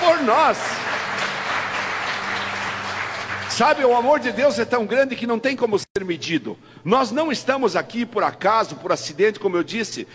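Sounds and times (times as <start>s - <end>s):
crowd applauding: 0.0s - 4.6s
speech: 0.2s - 1.4s, 3.5s - 10.1s.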